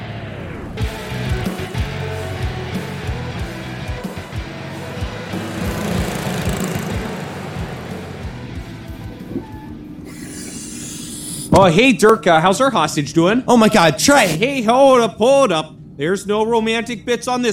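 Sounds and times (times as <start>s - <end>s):
train braking to a stop: 4.8s - 10.4s
speech: 11.6s - 17.5s.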